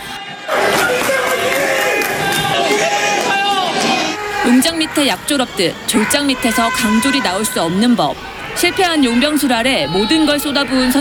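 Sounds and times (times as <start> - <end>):
stadium crowd clapping and cheering for players: 0.0 - 7.0
speech: 4.5 - 10.9.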